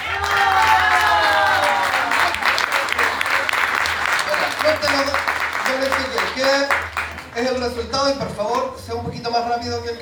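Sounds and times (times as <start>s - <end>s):
audience applause: 0.0s - 7.7s
speech: 7.4s - 10.0s.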